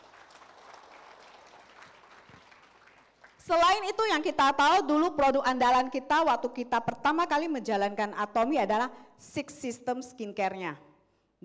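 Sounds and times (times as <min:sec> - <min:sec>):
audience applause: 0:00.0 - 0:03.4
speech: 0:03.4 - 0:11.4.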